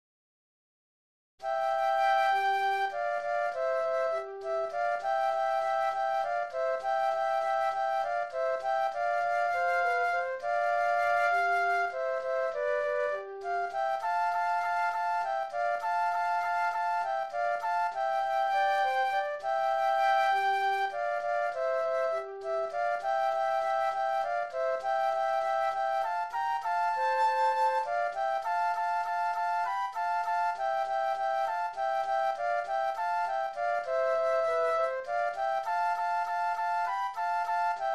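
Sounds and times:
flute duet: 0:01.4 - 0:37.9.

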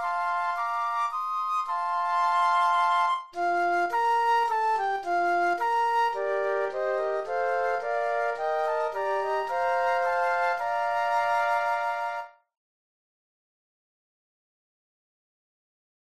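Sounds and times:
flute trio playing: 0:00.0 - 0:12.4.

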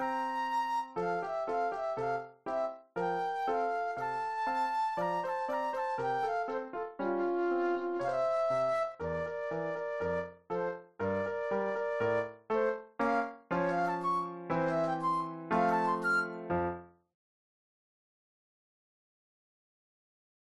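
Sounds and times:
flute solo: 0:00.0 - 0:12.4, 0:13.1 - 0:16.5.

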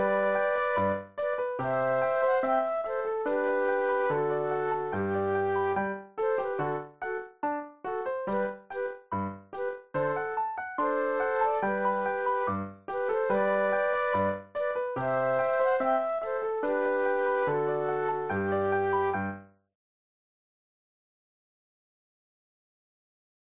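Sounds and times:
flute duet: 0:00.0 - 0:07.4, 0:08.2 - 0:19.4
piano: 0:00.0 - 0:19.6.

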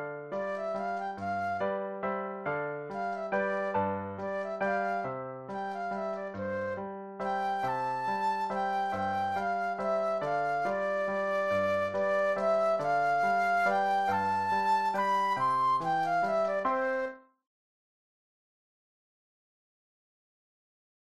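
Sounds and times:
flute solo: 0:00.4 - 0:02.0, 0:02.9 - 0:17.3.

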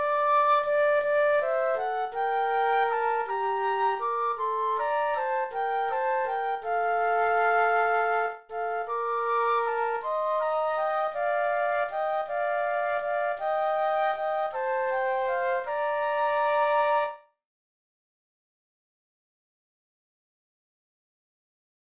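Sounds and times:
flute duet: 0:00.0 - 0:17.4.

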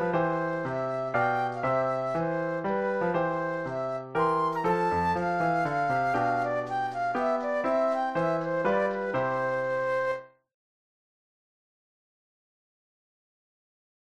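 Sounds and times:
classical minuet flute solo: 0:00.0 - 0:10.4.

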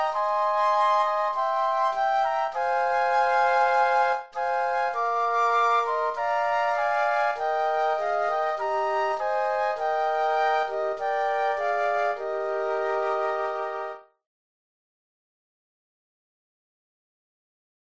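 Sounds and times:
flute trio playing: 0:00.0 - 0:14.1.

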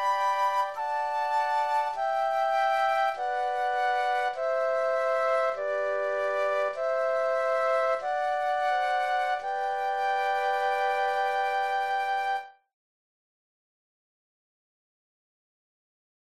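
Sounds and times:
flute trio playing: 0:00.0 - 0:12.6.

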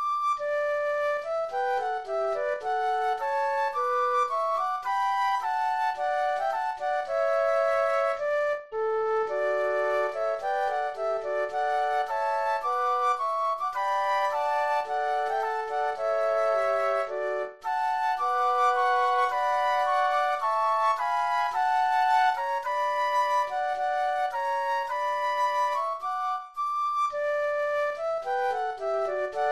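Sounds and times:
flute trio playing a patriotic tune: 0:00.0 - 0:29.4.

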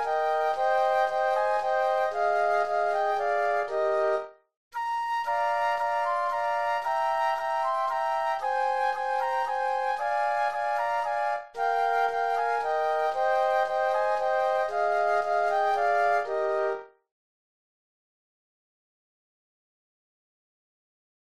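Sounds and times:
flute trio playing classical German dance: 0:00.0 - 0:04.2, 0:04.8 - 0:16.8.

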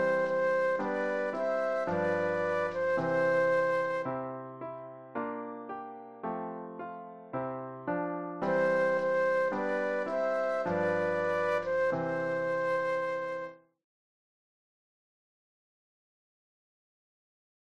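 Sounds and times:
flute duet: 0:00.0 - 0:04.9, 0:08.4 - 0:13.7
piano: 0:00.0 - 0:13.7.

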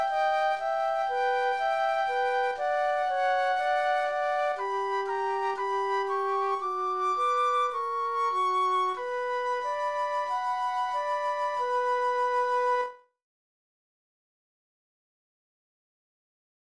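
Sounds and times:
classical sarabande flute duet: 0:00.0 - 0:13.1.

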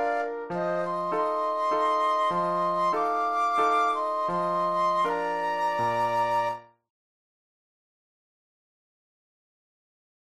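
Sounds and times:
flute duet: 0:00.0 - 0:06.8
piano: 0:00.0 - 0:06.9.

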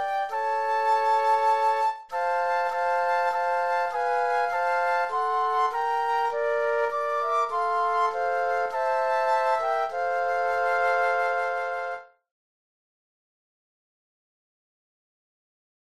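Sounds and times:
flute trio playing: 0:00.0 - 0:12.2.

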